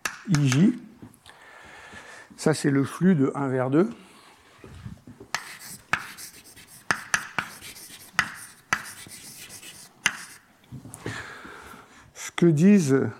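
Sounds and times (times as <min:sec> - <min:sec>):
speech: 0:00.3 - 0:00.9, 0:02.4 - 0:04.0, 0:12.4 - 0:13.1
writing on a board: 0:05.3 - 0:10.5.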